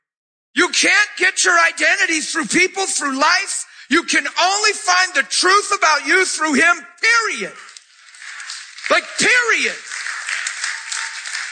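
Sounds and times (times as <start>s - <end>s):
speech: 0.7s - 7.7s, 8.9s - 9.9s
church audience clapping during a sermon: 7.6s - 11.4s.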